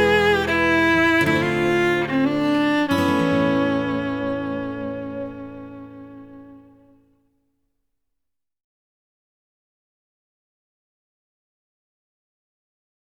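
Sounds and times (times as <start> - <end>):
fiddle playing: 0.0 - 7.0.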